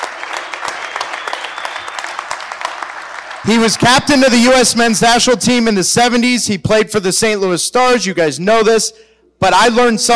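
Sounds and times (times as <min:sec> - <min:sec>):
audience applause: 0:00.0 - 0:04.8
speech: 0:03.4 - 0:10.1.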